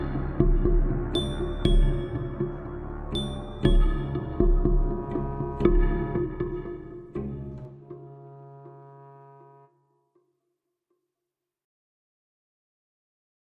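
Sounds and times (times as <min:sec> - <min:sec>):
heartbeat: 0:00.0 - 0:02.5, 0:03.6 - 0:06.6.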